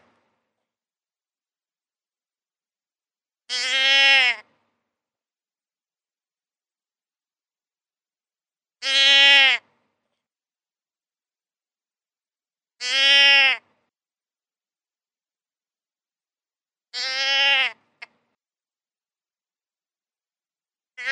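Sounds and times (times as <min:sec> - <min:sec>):
deer bleating: 0:03.5 - 0:04.5, 0:08.8 - 0:09.7, 0:12.8 - 0:13.7, 0:16.9 - 0:18.1.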